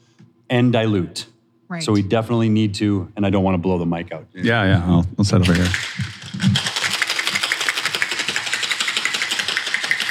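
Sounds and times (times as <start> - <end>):
speech: 0.5 - 6.6
cocktail shaker shaken hard for a sour cocktail: 5.5 - 10.0.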